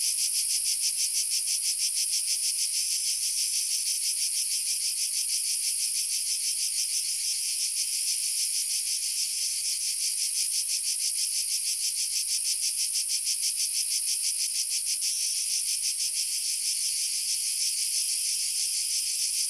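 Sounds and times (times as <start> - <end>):
two species of cicada: 0.0 - 19.4.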